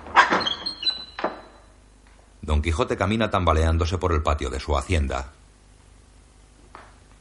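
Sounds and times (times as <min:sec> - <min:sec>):
door being closed: 0:00.0 - 0:01.7
speech: 0:02.5 - 0:05.4.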